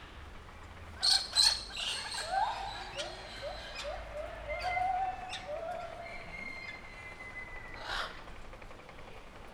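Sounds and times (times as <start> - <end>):
blue-and-yellow cockatoo calling loudly at a zoo: 1.0 - 8.3.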